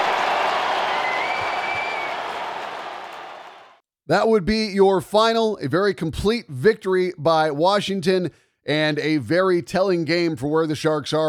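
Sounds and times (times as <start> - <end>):
hockey arena crowd applauding: 0.0 - 3.8
faint whistle: 0.9 - 2.2
speech: 4.1 - 11.2.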